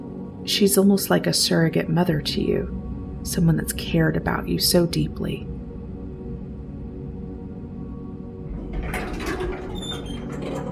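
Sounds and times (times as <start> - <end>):
low steady hum: 0.0 - 10.7
speech: 0.4 - 5.5
elevator doors sliding open: 8.5 - 10.7.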